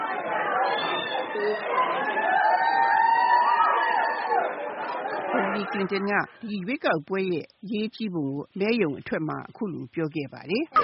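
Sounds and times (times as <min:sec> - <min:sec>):
crowd cheering in welcome at a polling place during an election: 0:00.0 - 0:06.0
overlapping voices and chatter: 0:00.0 - 0:07.8, 0:10.5 - 0:10.8
speech: 0:01.4 - 0:02.2, 0:05.6 - 0:10.8.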